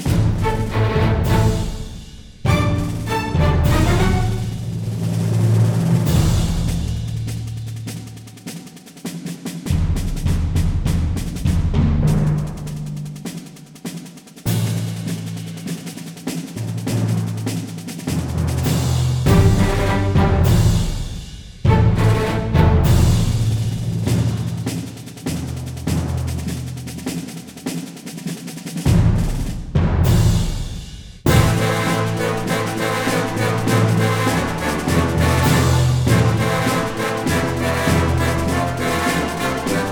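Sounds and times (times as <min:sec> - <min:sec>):
brass instruments: 0:00.0 - 0:07.3, 0:18.3 - 0:24.7, 0:31.2 - 0:39.9
percussion: 0:00.0 - 0:39.9.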